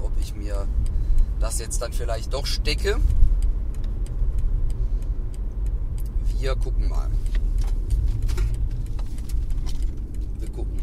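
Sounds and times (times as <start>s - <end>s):
moving car's engine rumble: 0.0s - 10.8s
road noise: 0.0s - 10.8s
speech: 1.4s - 3.2s, 6.4s - 7.7s
loose items rustling on a car passenger seat: 7.1s - 10.5s.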